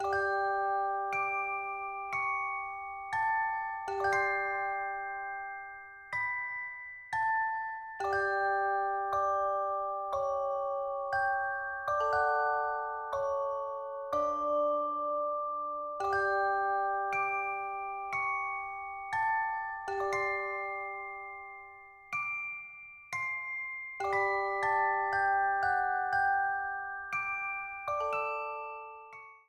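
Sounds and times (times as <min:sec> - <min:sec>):
music box melody: 0:00.0 - 0:29.4.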